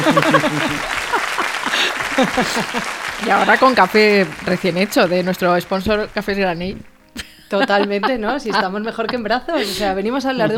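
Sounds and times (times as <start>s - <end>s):
audience applause: 0.0s - 6.7s
laughter: 0.0s - 10.5s
speech: 0.1s - 0.7s, 2.2s - 6.9s, 7.5s - 10.5s.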